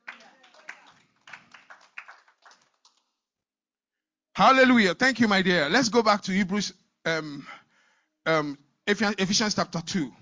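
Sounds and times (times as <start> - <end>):
audience hand clapping: 0.0 - 3.2
speech: 4.4 - 7.6, 8.2 - 10.2.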